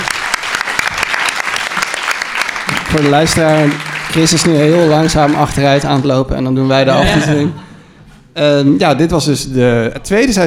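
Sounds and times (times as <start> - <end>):
applause for a departing guest: 0.0 - 6.4
speech: 2.9 - 7.6, 8.4 - 10.4
laughter: 6.6 - 8.0.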